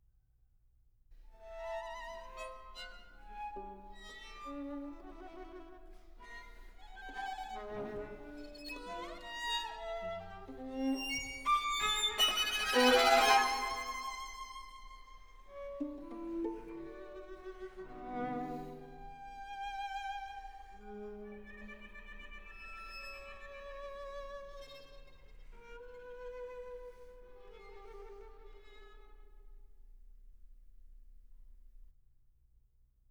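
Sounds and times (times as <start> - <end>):
string quartet playing: 1.8 - 25.0.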